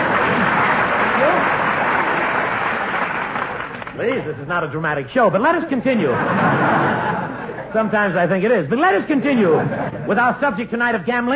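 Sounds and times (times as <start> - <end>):
studio audience applauding together: 0.0 - 4.2
speech: 4.0 - 11.3
laughter: 5.9 - 7.9, 9.1 - 10.2.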